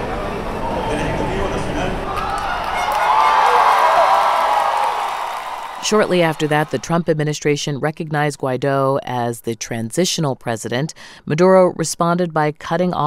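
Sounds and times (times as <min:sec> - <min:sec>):
large outdoor crowd shouting and cheering: 0:00.2 - 0:06.8
speech: 0:05.9 - 0:13.0.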